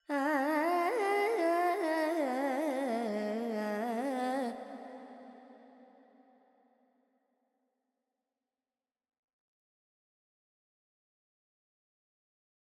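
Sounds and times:
Carnatic female vocal alaps in G pentatonic: 0.0s - 5.4s.

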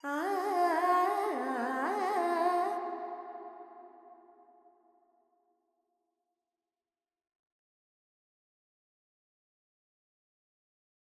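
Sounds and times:
woman singing Carnatic pentatonic alap in G: 0.0s - 3.4s.

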